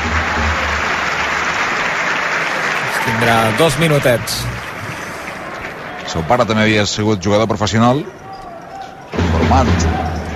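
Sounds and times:
audience applause at a professional basketball game: 0.0s - 7.0s
speech: 3.1s - 4.5s, 6.1s - 8.2s, 9.5s - 10.2s.

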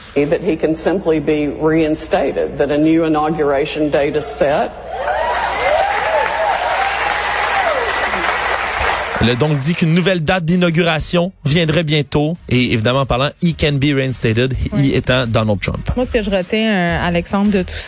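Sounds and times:
speech: 0.2s - 5.2s, 9.2s - 17.8s
crowd cheering and whooping: 4.8s - 9.3s
crowd applauding: 5.0s - 10.2s
person speaking loudly: 14.5s - 15.3s.

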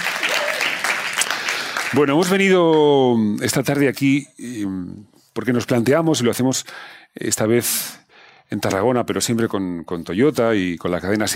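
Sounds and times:
audience applauding: 0.0s - 2.9s
speech: 1.9s - 11.3s.

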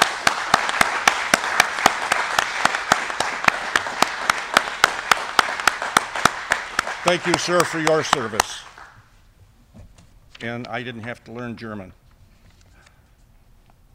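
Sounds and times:
room full of people applauding: 0.0s - 9.0s
sharp evenly spaced claps: 0.0s - 9.0s
speech: 7.0s - 8.7s, 10.4s - 12.0s.

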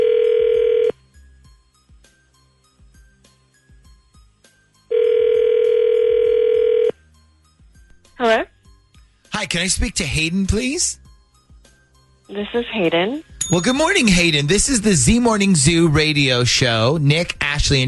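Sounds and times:
telephone ringback tones: 0.0s - 1.0s, 4.9s - 7.0s
speech: 9.5s - 11.0s, 12.3s - 17.8s
person answering phone: 12.3s - 13.3s.

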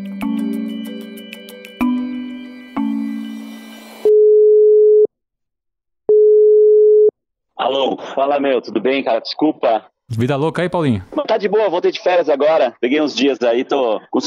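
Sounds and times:
telephone ringback tone while calling someone: 4.0s - 5.1s, 6.1s - 7.1s
speech: 7.7s - 14.2s.

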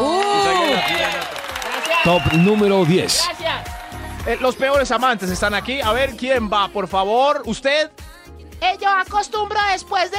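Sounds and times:
applause: 0.0s - 5.4s
speech: 2.0s - 3.4s, 4.2s - 8.0s, 8.6s - 10.1s.

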